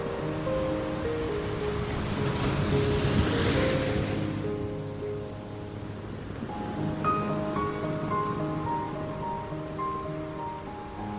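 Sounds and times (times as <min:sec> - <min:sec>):
sea waves: 0:00.0 - 0:11.1.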